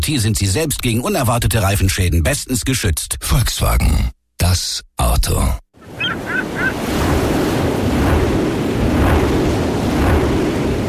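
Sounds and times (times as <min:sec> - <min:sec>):
speech: 0:00.0 - 0:05.6
wind roaring at an offshore wind farm: 0:05.8 - 0:10.8.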